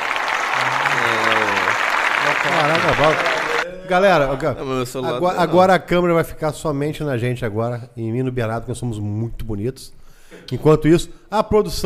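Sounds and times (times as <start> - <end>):
applause: 0.0 - 3.7
laughter: 0.2 - 5.9
speech: 2.6 - 11.8.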